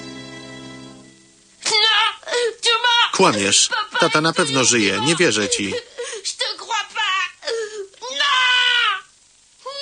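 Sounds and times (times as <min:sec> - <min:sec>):
boys crying in an animated Dragon Ball Z scene: 0:01.7 - 0:09.1
speech: 0:03.2 - 0:06.0.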